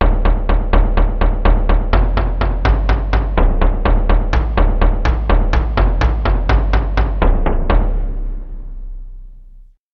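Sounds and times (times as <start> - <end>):
melodic bass tom drum: 0.0 - 9.0.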